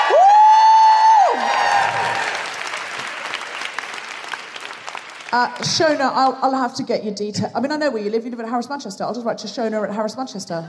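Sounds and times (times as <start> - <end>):
audience cheering: 0.0 - 5.5
speech: 5.3 - 10.6.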